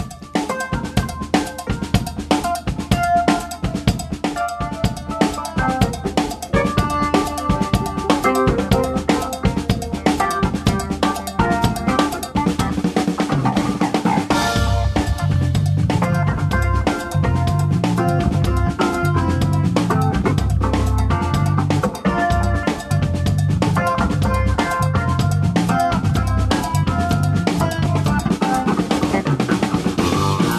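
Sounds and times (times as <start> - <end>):
funky upbeat instrumental jazz from a duo: 0.0 - 30.5
deep punchy bassline: 14.3 - 28.4, 29.1 - 30.5.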